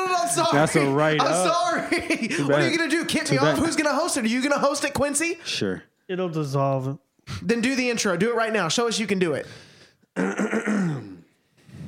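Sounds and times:
speech: 0:00.4 - 0:11.1
loud drawn-out burp: 0:10.2 - 0:11.4.

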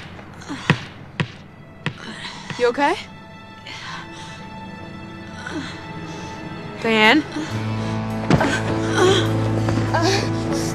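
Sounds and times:
ball bouncing: 0:00.0 - 0:02.8
speech: 0:02.6 - 0:03.1, 0:05.5 - 0:05.9, 0:06.8 - 0:07.8, 0:08.4 - 0:10.4.

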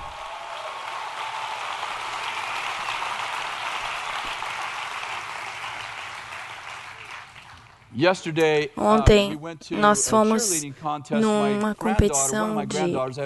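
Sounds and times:
audience applause: 0:00.0 - 0:07.8
speech: 0:08.0 - 0:13.2.

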